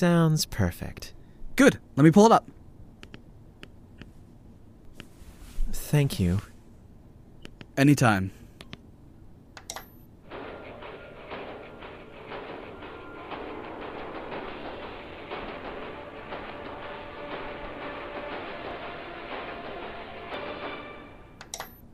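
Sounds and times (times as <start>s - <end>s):
speech: 0.0s - 2.6s, 5.7s - 6.5s, 7.8s - 8.4s
movie thundersnow storm sound effects: 10.3s - 18.8s.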